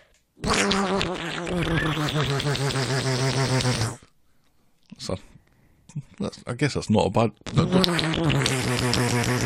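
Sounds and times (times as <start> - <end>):
person imitating a duck: 0.4 - 4.1, 7.4 - 9.4
speech: 5.1 - 5.3, 5.9 - 8.6.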